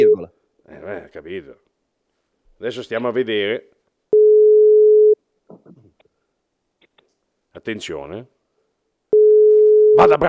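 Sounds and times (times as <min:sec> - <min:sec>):
speech: 0:00.9 - 0:01.7, 0:02.6 - 0:03.8, 0:07.6 - 0:08.4, 0:10.0 - 0:10.2
telephone line tone while dialing a number: 0:04.1 - 0:05.2, 0:09.1 - 0:10.0.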